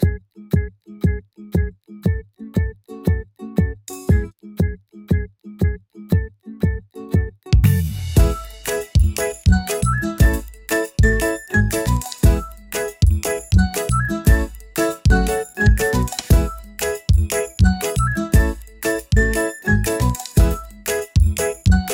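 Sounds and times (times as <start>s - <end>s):
ukulele: 0.0s - 21.9s.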